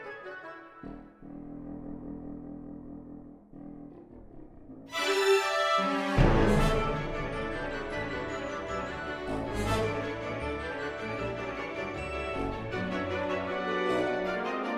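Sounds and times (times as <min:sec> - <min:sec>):
orchestral music: 0:04.9 - 0:14.7.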